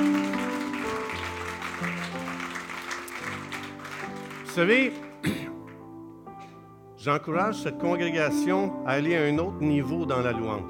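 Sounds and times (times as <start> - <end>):
audience applause: 0.0 - 5.8
speech: 4.6 - 5.4, 7.0 - 10.6.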